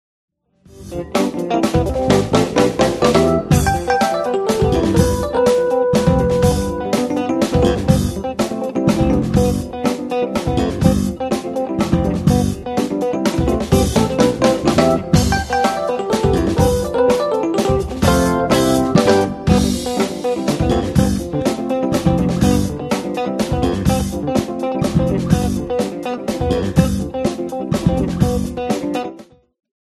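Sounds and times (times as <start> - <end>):
funk music: 0.7 - 29.2.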